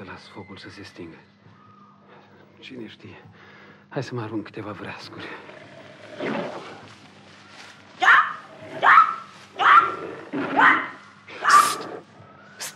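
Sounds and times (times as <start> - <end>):
speech: 0.1 - 1.4, 2.6 - 5.6
panther growling: 5.0 - 6.9, 8.4 - 8.9, 9.6 - 12.1.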